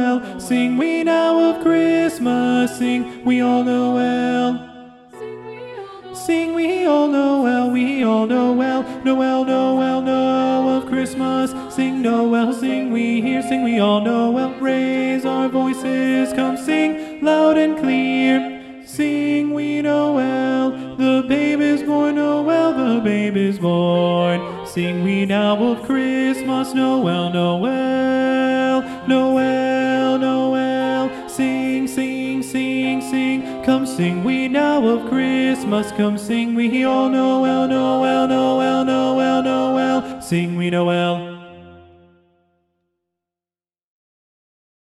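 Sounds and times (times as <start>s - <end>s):
SATB choir singing with tenor predominant: 0.0s - 42.1s.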